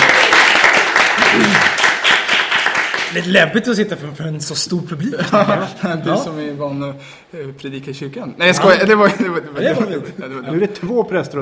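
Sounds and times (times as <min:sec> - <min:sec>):
audience applause for a guest at a Swedish live show: 0:00.0 - 0:03.2
speech: 0:01.4 - 0:01.7, 0:03.1 - 0:11.4.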